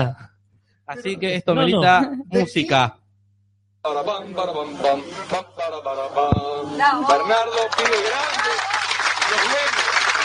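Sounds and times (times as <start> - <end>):
speech: 0.0 - 0.2, 0.9 - 3.0, 3.8 - 8.7, 9.3 - 9.8
group applause: 7.4 - 10.2.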